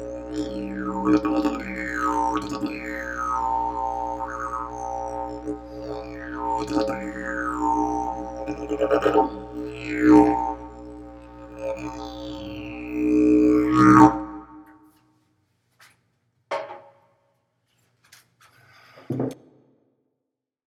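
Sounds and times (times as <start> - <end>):
didgeridoo: 0.0 - 14.8.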